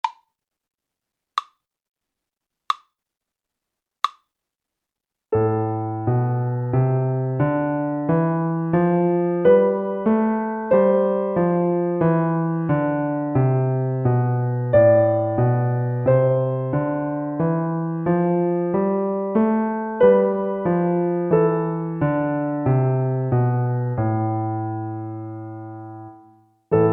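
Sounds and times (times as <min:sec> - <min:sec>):
slow A minor scale: 0:05.4 - 0:26.9.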